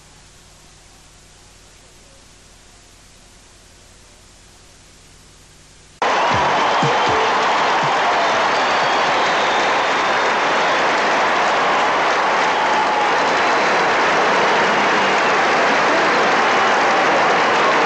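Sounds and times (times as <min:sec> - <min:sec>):
spectators cheering for Andersen of Switzerland: 0:06.0 - 0:17.8.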